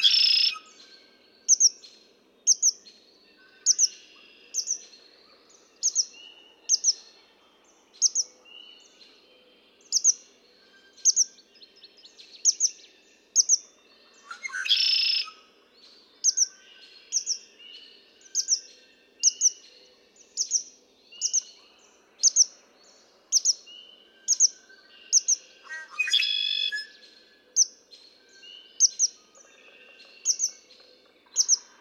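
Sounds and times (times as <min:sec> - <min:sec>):
another bird's high paired chirps: 0:00.0 - 0:00.8, 0:01.4 - 0:01.8, 0:02.5 - 0:02.9, 0:03.6 - 0:07.1, 0:08.0 - 0:08.8, 0:09.9 - 0:10.2, 0:10.9 - 0:11.7, 0:12.4 - 0:15.5, 0:16.2 - 0:17.6, 0:18.2 - 0:19.6, 0:22.2 - 0:22.6, 0:23.3 - 0:30.7.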